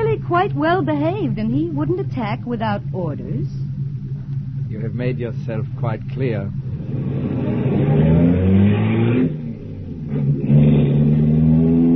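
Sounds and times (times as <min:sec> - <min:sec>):
newly bought car engine accelerating while being driven: 0:00.0 - 0:11.9
speech: 0:00.3 - 0:03.6, 0:04.7 - 0:07.3.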